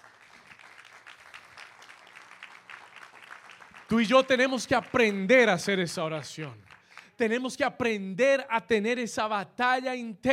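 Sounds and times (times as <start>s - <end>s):
audience applauding: 0.0s - 7.2s
speech: 3.9s - 10.3s.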